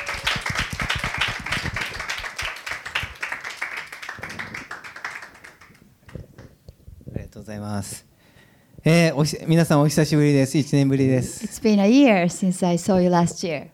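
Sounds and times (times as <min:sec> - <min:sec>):
audience applause welcoming a speaker: 0:00.0 - 0:05.8
speech: 0:07.5 - 0:08.0, 0:08.8 - 0:13.7.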